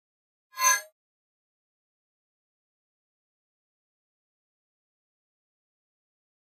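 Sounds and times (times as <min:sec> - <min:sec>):
mouse over sound: 0:00.6 - 0:00.9.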